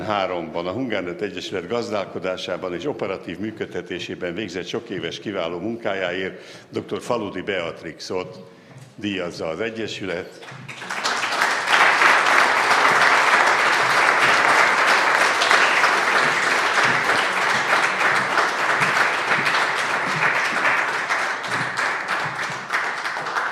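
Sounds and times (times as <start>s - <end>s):
speech: 0.1s - 11.0s
audience applause: 10.4s - 23.5s.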